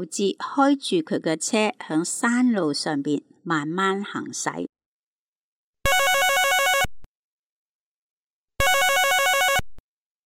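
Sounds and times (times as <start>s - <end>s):
speech: 0.0s - 4.7s
warbling electronic mobile phone ringtone inside a car: 5.9s - 6.9s, 8.6s - 9.8s.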